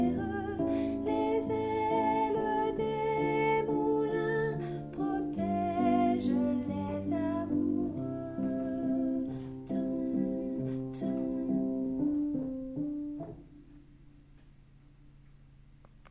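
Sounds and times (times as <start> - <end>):
soprano voice singing a lament: 0.0 - 12.4.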